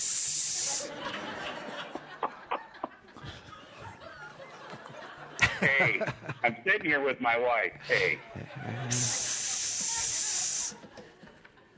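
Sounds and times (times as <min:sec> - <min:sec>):
person hissing: 0:00.0 - 0:00.9, 0:08.9 - 0:10.8
laughter: 0:00.6 - 0:07.1, 0:07.7 - 0:11.7
speech: 0:05.6 - 0:09.2.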